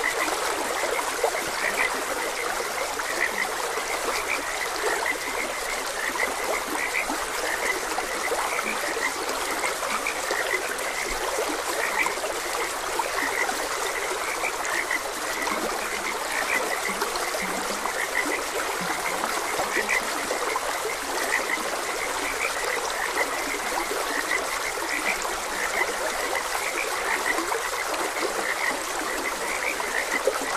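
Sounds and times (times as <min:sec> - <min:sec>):
frogs croaking: 0:00.0 - 0:30.5
stream water rushing: 0:00.0 - 0:30.5.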